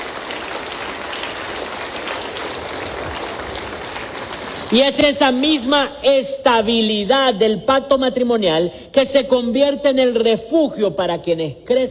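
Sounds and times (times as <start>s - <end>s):
loud applause: 0.0s - 5.1s
speech: 4.7s - 11.9s.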